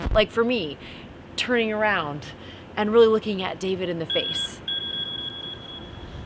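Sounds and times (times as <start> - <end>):
speech: 0.1 - 4.5
phone notification beep: 4.1 - 6.1.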